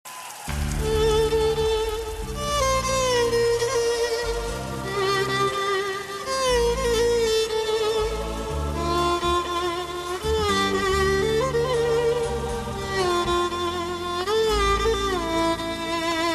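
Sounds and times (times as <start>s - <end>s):
sad violin: 0.5s - 16.3s.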